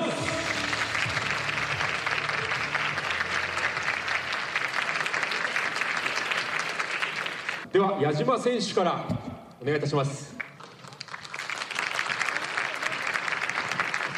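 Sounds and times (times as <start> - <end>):
applause: 0.0 - 7.7, 10.4 - 14.1
speech: 7.8 - 10.3.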